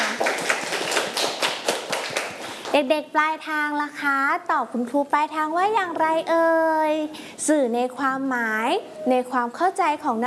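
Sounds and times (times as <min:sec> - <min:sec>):
children clapping for a classmate in a class lesson: 0:00.0 - 0:02.7
speech: 0:02.8 - 0:10.2.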